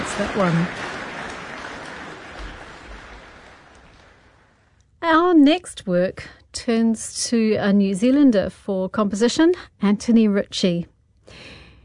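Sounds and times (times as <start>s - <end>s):
audience applause after piano performance: 0.0s - 4.6s
speech: 0.2s - 0.8s, 5.3s - 11.6s.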